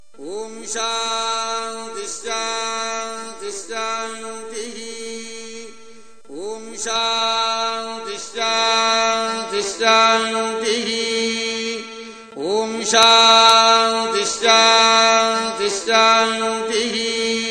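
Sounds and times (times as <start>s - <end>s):
mantra chanting: 0.0s - 17.4s.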